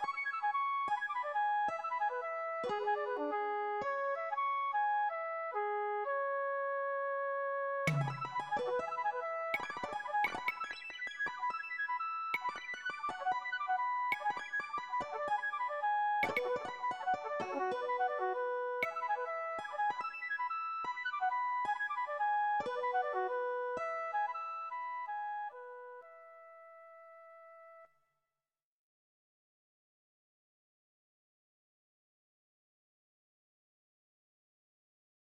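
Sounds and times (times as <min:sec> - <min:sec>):
flute: 0:00.0 - 0:27.9
non-melodic percussion: 0:07.9 - 0:09.0.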